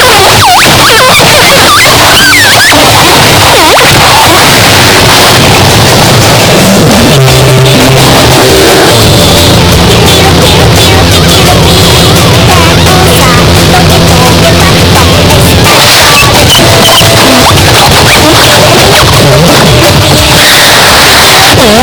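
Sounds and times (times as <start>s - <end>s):
lolicore noise music: 0.0s - 21.8s.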